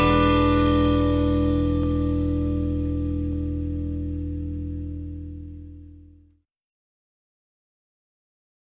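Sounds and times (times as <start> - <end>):
blues jazz music: 0.0 - 6.1.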